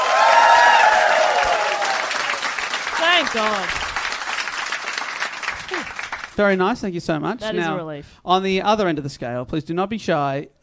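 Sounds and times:
crowd applause: 0.0s - 6.4s
speech: 3.2s - 3.8s, 6.4s - 10.6s.

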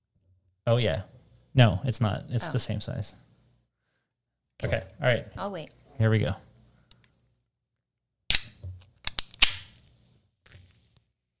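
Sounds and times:
speech: 0.7s - 3.2s, 4.6s - 6.5s
drink can popping open: 8.3s - 9.7s.

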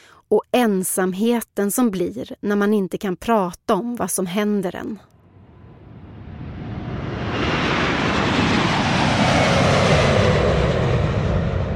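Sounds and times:
speech: 0.3s - 5.1s
airplane engines roaring during takeoff: 5.2s - 11.7s.

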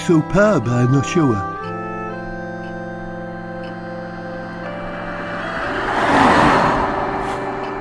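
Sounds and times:
speech: 0.1s - 1.5s
car driving past the house: 4.2s - 7.8s.

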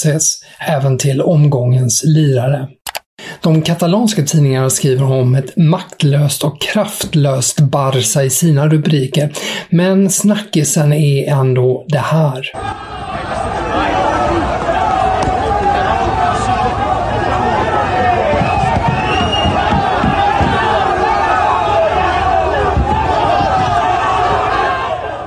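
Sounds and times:
speech: 0.0s - 2.8s, 3.4s - 14.7s
angry football supporters surrounding a car at Camp Nou: 12.6s - 25.2s.

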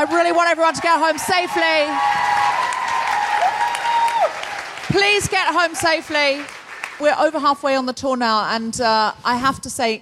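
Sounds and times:
speech: 0.0s - 2.6s, 4.9s - 10.0s
crowd applause at a Vancouver show: 0.7s - 7.1s.

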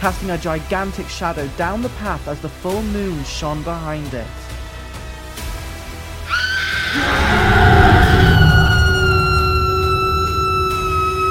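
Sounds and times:
speech: 0.0s - 4.5s
werewolf howl: 6.3s - 11.2s
deep rumbling backdrop: 6.8s - 11.2s.

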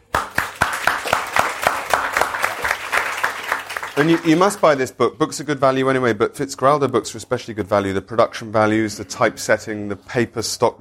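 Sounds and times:
audience applause: 0.0s - 4.8s
speech: 4.0s - 10.7s.

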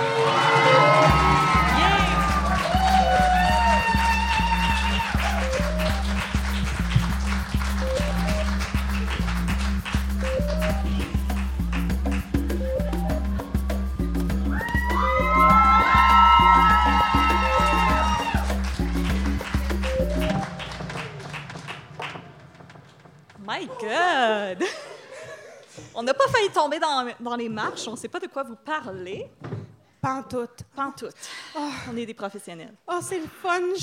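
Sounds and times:
audience applauding: 0.0s - 23.4s
laughter: 24.6s - 25.8s
speech: 26.1s - 29.4s, 30.0s - 33.8s.

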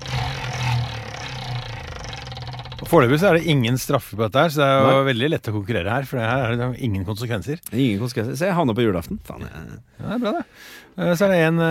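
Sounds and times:
wheel of fortune spinning: 0.0s - 3.5s
speech: 2.8s - 11.7s.

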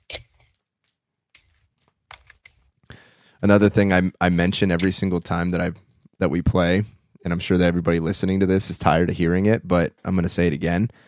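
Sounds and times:
playing cards being shuffled: 0.0s - 2.7s
speech: 3.4s - 11.0s.

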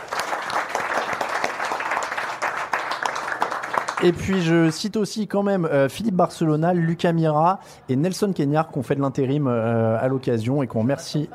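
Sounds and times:
audience applause: 0.0s - 4.8s
speech: 4.0s - 11.3s.

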